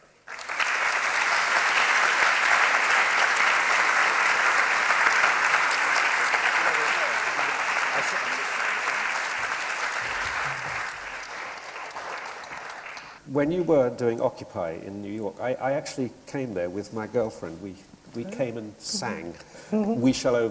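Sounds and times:
audience applause: 0.0 - 13.2
speech: 13.4 - 20.4.

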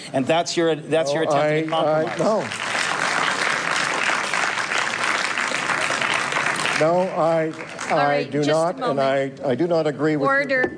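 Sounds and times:
speech: 0.1 - 2.7, 6.8 - 10.7
audience applause in council chamber: 1.4 - 8.6.

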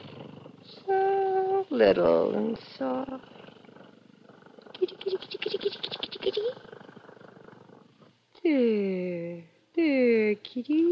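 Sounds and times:
kitten purring: 0.0 - 8.2
speech: 1.7 - 3.4, 4.9 - 6.7, 8.4 - 10.8.

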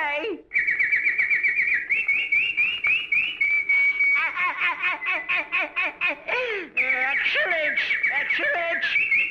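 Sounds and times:
canary singing in whistled phrases: 0.5 - 4.1, 6.8 - 9.3
laughter: 3.8 - 7.6.

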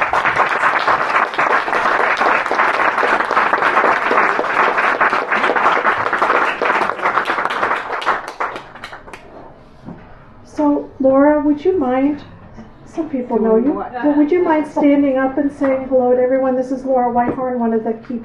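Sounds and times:
audience applause: 0.0 - 9.3
speech: 11.6 - 12.3, 13.0 - 18.2.

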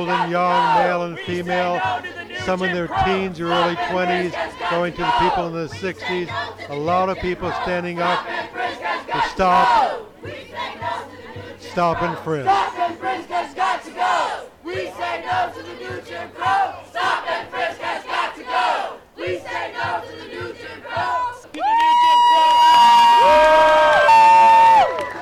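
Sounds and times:
speech: 0.0 - 8.6, 9.4 - 10.0, 11.8 - 12.7
large protest crowd chanting and yelling: 0.0 - 25.1.

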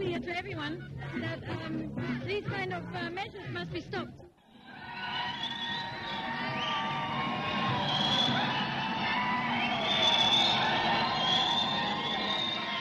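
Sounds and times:
speech: 0.2 - 5.1
large protest crowd screaming and shouting: 4.5 - 12.7.

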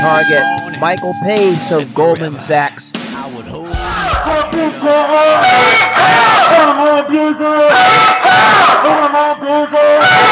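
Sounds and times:
speech: 0.0 - 10.2
noisy protest crowd shouting: 3.7 - 10.2
drawn-out honking-like cries: 5.2 - 6.6, 7.6 - 10.2.

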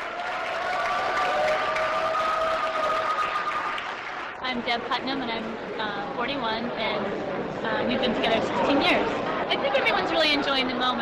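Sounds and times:
crowd cheering and applauding: 0.0 - 4.4
speech: 4.5 - 11.0.

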